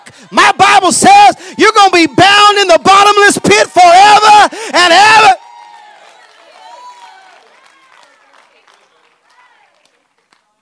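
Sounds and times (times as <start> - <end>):
speech: 0.1 - 3.7
audience applause: 4.5 - 10.5.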